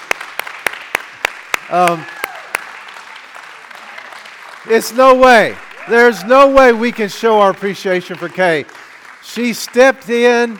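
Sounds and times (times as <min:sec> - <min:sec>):
audience applause, standing ovation: 0:00.0 - 0:10.5
speech: 0:01.7 - 0:02.2, 0:04.6 - 0:10.5.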